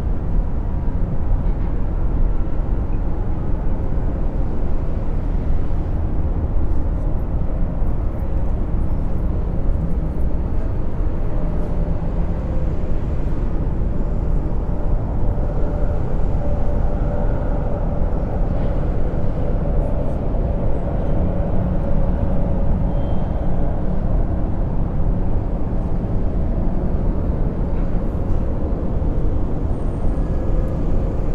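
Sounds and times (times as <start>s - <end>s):
city traffic rumble heard from skyscrapers: 0.0s - 31.3s.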